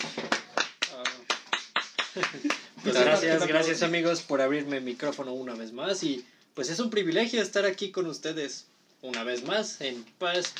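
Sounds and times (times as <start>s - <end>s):
brisk steady hand clapping: 0.0s - 2.8s, 9.1s - 9.6s
laughter: 2.0s - 3.2s
speech: 2.2s - 10.5s.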